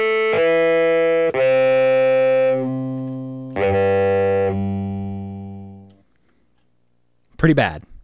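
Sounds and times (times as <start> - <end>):
Casio keyboard buzzing tone: 0.0 - 6.0.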